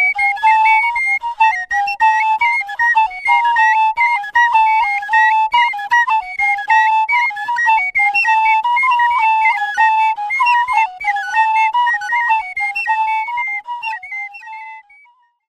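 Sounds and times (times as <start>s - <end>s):
Bimoba trio playing music in Ghana: 0.0s - 15.0s.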